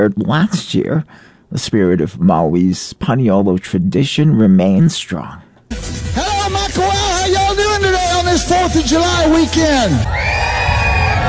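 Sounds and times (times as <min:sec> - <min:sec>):
speech: 0:00.0 - 0:07.5, 0:08.4 - 0:10.3
thousands of rodeo fans cheering at the Makawao Stampede on Maui: 0:09.2 - 0:11.2.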